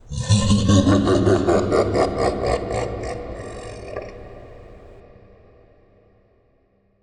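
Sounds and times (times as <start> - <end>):
demon laugh: 0.0 - 5.0.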